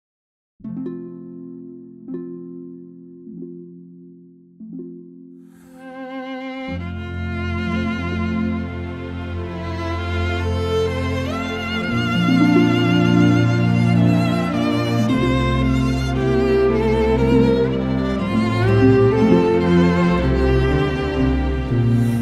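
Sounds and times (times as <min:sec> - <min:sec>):
reference violin playing: 0:05.6 - 0:22.1.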